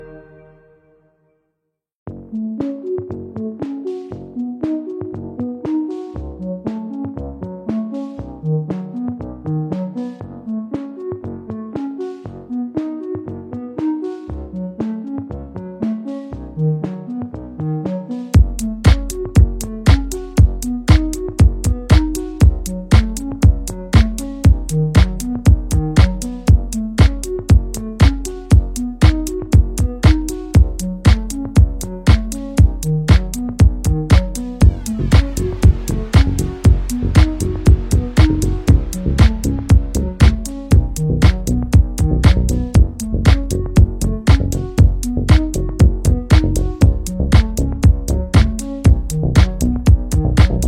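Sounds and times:
background music: 0:00.0 - 0:01.3, 0:02.1 - 0:50.6.

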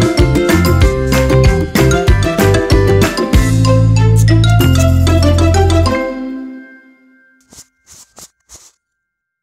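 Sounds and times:
instrumental children's music: 0:00.0 - 0:06.9.

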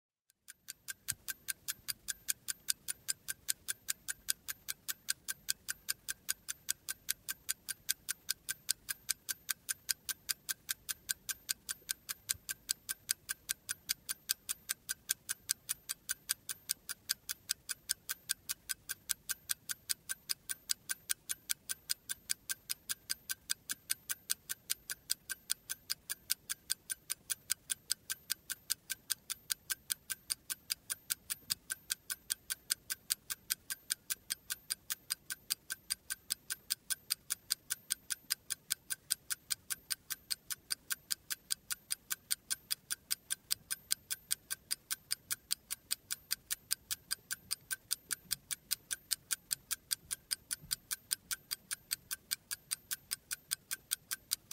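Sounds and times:
clock ticking: 0:00.4 - 0:54.5.

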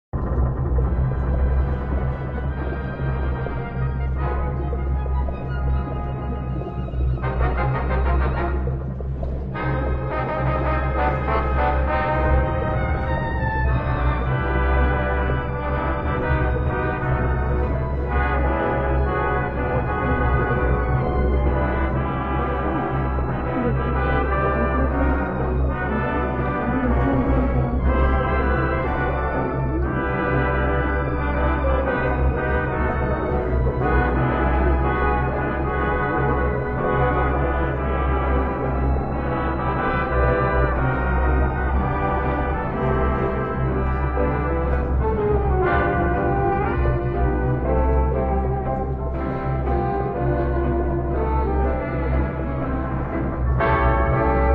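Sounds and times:
ambient music: 0:00.2 - 0:54.5.

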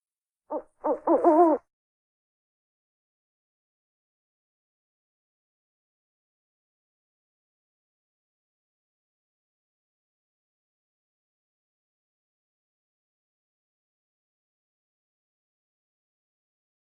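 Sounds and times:
owls and short owls calling: 0:00.5 - 0:01.6.

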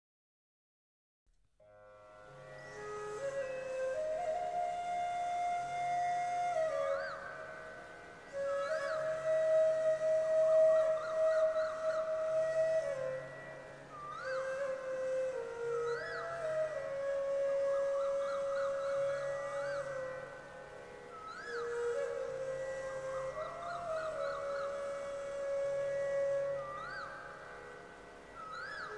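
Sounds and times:
relaxing Hare Krishna devotional music: 0:01.9 - 0:28.9.

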